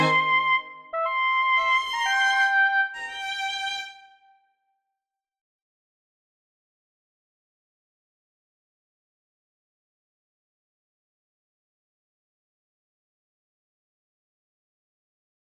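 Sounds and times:
oboe playing a concerto: 0:00.0 - 0:03.8.

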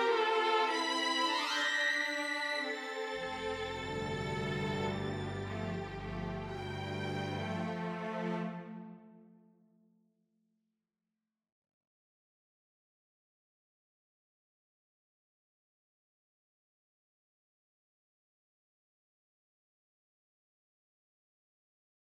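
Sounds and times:
string orchestra playing an overture: 0:00.0 - 0:09.2.

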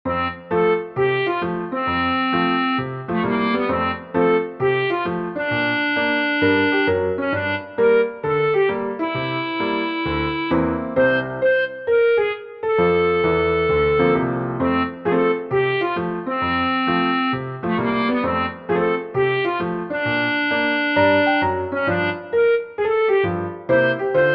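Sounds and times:
swing music: 0:00.1 - 0:24.3.

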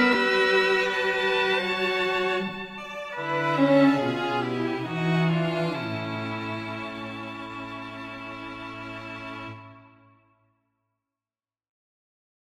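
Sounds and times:
microtonal fugue: 0:00.0 - 0:09.8.

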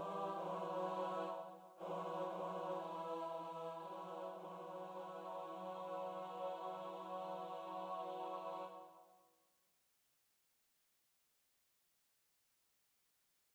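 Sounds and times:
chamber music: 0:00.0 - 0:08.8.

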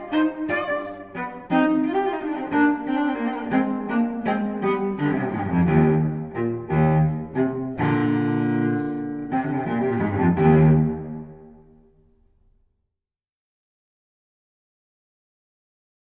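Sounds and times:
solo cello playing a gigue: 0:00.0 - 0:12.4.

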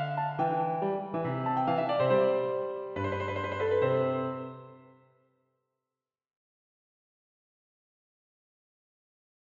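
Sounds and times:
sonatina: 0:00.0 - 0:05.1.

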